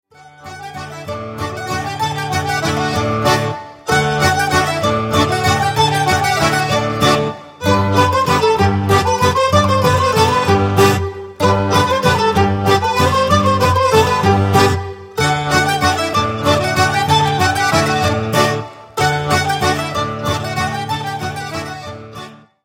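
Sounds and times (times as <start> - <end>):
mazurka: 0.2 - 22.5.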